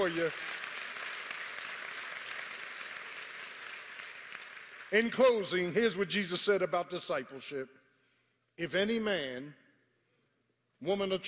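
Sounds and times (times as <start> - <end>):
speech: 0.0 - 0.6, 4.9 - 7.8, 8.6 - 9.6, 10.8 - 11.2
audience applause: 0.0 - 5.6.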